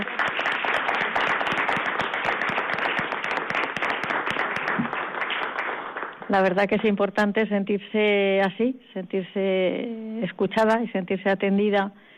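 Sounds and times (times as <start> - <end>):
audience applauding: 0.0 - 6.3
speech: 6.3 - 12.1.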